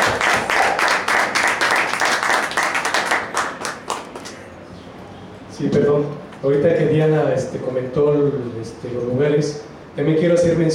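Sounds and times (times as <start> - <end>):
audience applause: 0.0 - 4.3
speech: 5.6 - 10.7.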